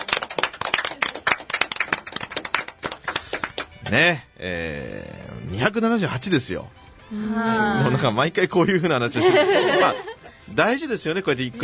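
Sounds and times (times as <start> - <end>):
crowd hand clapping: 0.0 - 4.0
speech: 3.9 - 11.6
laughter: 7.4 - 10.3.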